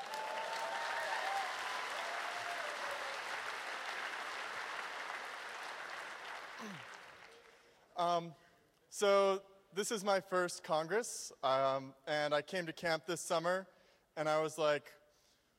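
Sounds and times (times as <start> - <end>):
crowd applause: 0.0 - 7.6
speech: 6.6 - 7.0, 8.0 - 15.0.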